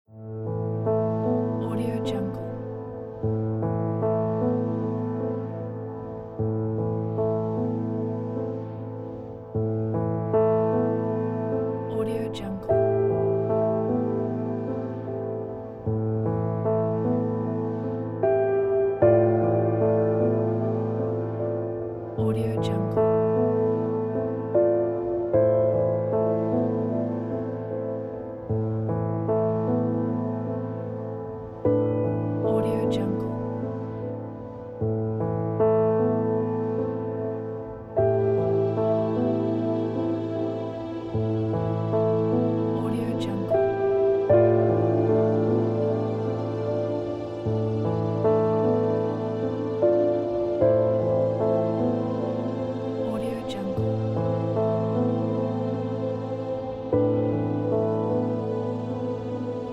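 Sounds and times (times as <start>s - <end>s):
sentimental piano: 0.0s - 59.7s.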